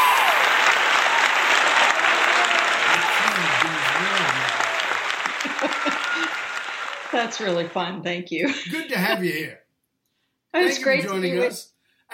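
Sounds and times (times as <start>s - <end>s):
audience applause welcoming a speaker on stage: 0.0s - 7.8s, 8.7s - 9.5s
laughter: 2.2s - 7.8s, 8.4s - 9.5s, 10.6s - 12.1s
speech: 7.2s - 9.6s, 10.5s - 11.7s.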